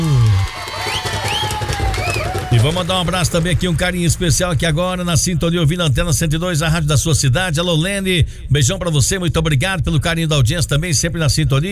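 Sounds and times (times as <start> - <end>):
cheering: 0.0 - 4.0
applause: 0.0 - 4.9
whistles: 0.2 - 2.7
speech: 2.6 - 11.7.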